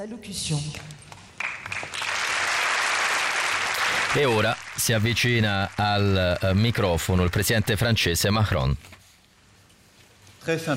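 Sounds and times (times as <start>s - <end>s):
speech: 0.0s - 1.0s, 4.1s - 9.0s, 10.4s - 10.7s
audience applause: 1.4s - 8.6s.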